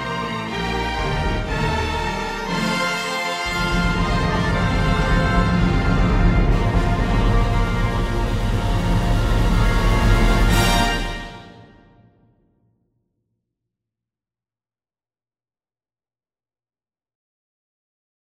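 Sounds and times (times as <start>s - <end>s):
fanfare: 0.0s - 12.1s.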